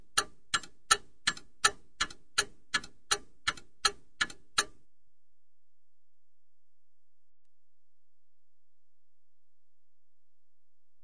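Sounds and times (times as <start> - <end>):
clock ticking: 0.0 - 4.8.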